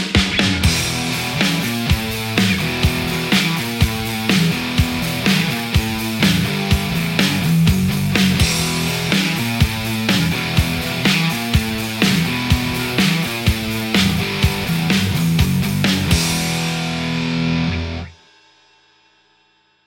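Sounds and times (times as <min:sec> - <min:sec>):
Telecaster electric guitar: 0:00.2 - 0:18.2.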